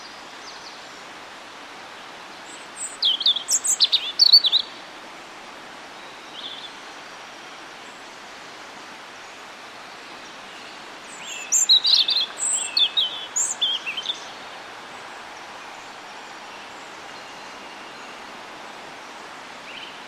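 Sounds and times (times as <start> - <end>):
European robin Erithacus rubecula giving high sharp twittering notes: 2.8 - 4.7, 11.2 - 14.4.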